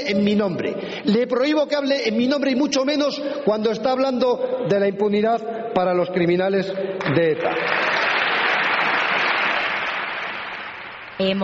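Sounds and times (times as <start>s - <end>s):
speech: 0.1s - 7.9s, 11.2s - 11.4s
standing ovation in parliament: 7.0s - 11.4s.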